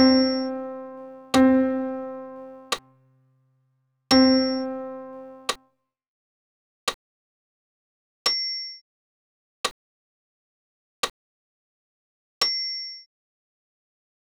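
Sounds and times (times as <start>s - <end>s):
solo piano: 0.0s - 2.8s, 4.1s - 5.5s.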